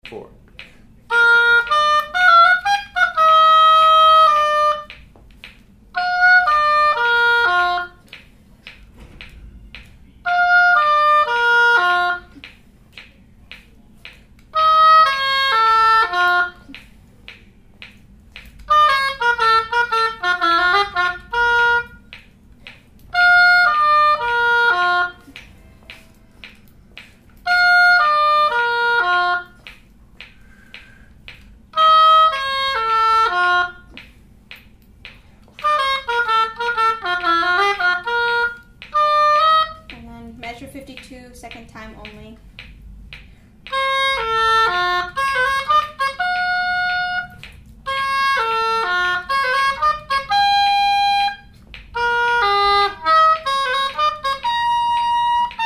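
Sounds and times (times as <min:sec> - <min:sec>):
oboe: 0:01.1 - 0:05.1, 0:05.9 - 0:12.6, 0:13.6 - 0:17.4, 0:18.6 - 0:34.1, 0:35.5 - 0:40.1, 0:43.6 - 0:55.6.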